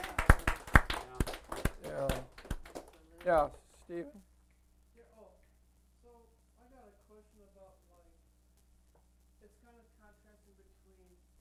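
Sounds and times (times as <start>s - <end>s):
sharp claps: 0.0s - 3.6s
speech: 3.2s - 4.3s.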